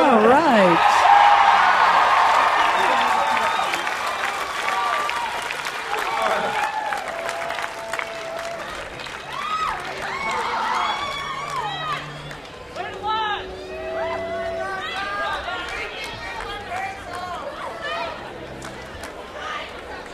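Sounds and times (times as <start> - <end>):
large crowd applauding: 0.0 - 20.1.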